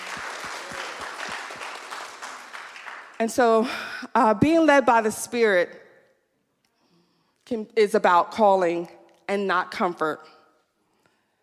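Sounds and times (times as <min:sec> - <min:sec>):
audience applause: 0:00.0 - 0:03.2
speech: 0:03.2 - 0:05.8, 0:07.5 - 0:10.4.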